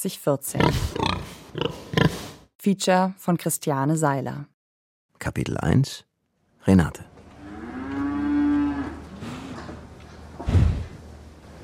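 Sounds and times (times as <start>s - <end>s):
speech: 0.0s - 1.8s, 2.6s - 4.5s, 5.2s - 7.1s
cow lowing in a long drawn-out moo: 7.3s - 9.8s
sharp heavy thump: 10.4s - 11.0s.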